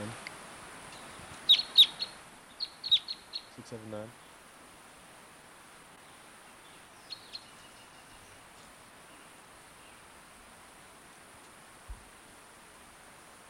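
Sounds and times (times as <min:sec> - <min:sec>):
wild bird calling: 0:00.8 - 0:05.1, 0:06.0 - 0:11.0.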